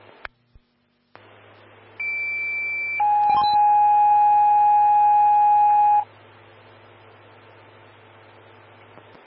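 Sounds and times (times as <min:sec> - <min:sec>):
fire dispatch alert tones: 0:02.0 - 0:06.0.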